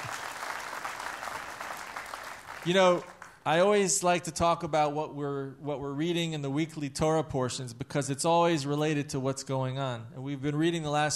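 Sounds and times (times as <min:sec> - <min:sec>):
audience applause: 0:00.0 - 0:03.4
speech: 0:02.6 - 0:11.1.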